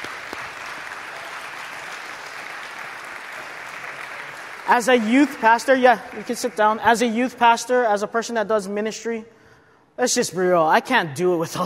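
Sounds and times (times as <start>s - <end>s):
crowd applauding: 0.0s - 7.4s
speech: 4.7s - 9.4s, 10.0s - 11.6s.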